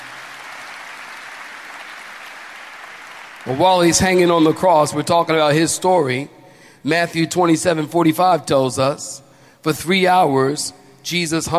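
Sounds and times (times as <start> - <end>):
audience clapping: 0.0 - 5.4
speech: 3.4 - 11.5.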